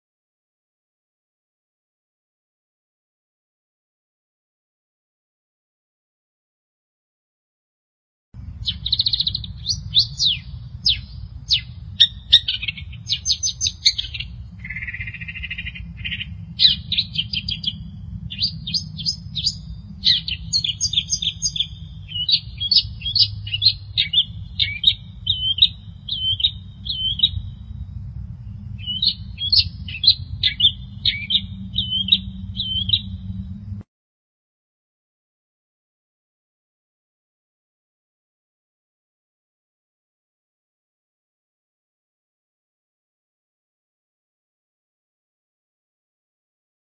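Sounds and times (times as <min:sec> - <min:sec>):
Long-tailed Shrike singing: 0:08.4 - 0:33.8
low rumble: 0:08.4 - 0:33.8.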